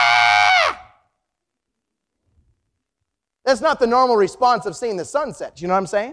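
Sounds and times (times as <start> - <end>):
voice imitating a little girl's death wail: 0.0 - 1.1
speech: 3.5 - 6.1.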